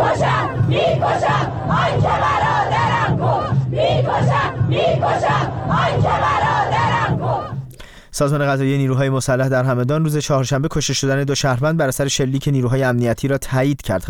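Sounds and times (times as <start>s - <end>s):
funeral crowd chanting slogans: 0.0s - 7.7s
speech: 8.2s - 14.0s.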